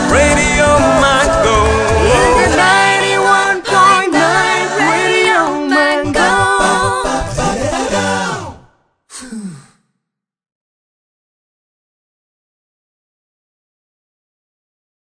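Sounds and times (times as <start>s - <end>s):
a cappella jingle: 0.0s - 8.8s.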